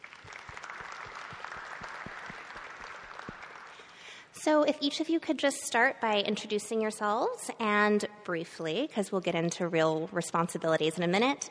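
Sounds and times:
round of applause from a group: 0.0s - 4.2s
speech: 4.4s - 11.4s.

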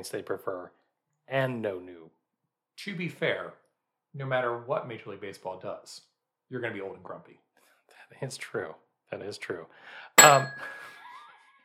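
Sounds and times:
speech: 0.0s - 2.2s, 2.8s - 7.4s, 8.1s - 10.8s
bell ding: 10.2s - 10.9s.

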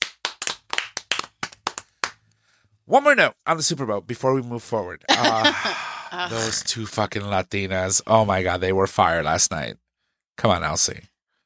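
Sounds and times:
audience clapping: 0.0s - 2.2s
speech: 2.9s - 9.8s, 10.4s - 11.1s
laughter: 5.1s - 7.0s.

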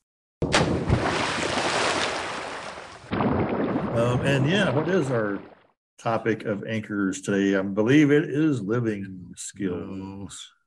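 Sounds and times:
sea waves around a boat: 0.9s - 5.8s
speech: 4.0s - 10.6s.

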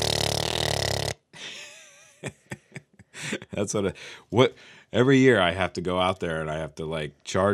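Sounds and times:
person vocally imitating a tractor engine starting up: 0.0s - 0.5s
speech: 3.6s - 7.5s.

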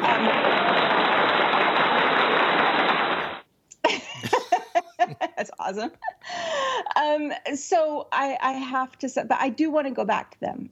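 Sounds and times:
laughter: 0.0s - 2.5s, 3.9s - 6.2s
round of applause: 0.0s - 3.4s
speech: 5.7s - 10.7s.

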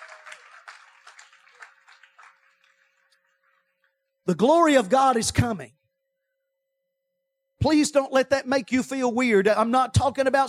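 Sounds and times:
audience hand clapping: 0.0s - 4.0s
speech: 4.3s - 5.8s, 7.6s - 10.4s.

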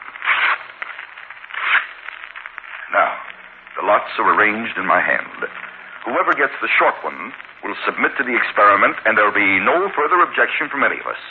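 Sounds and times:
paper being torn into strips: 0.2s - 0.7s, 1.6s - 2.0s
speech: 3.8s - 11.2s.

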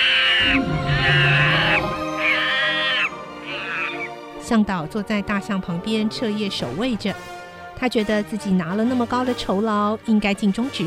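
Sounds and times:
leopard low rumbling roar: 0.0s - 4.1s
monkeys screaming: 0.0s - 4.1s
speech: 4.5s - 10.8s.

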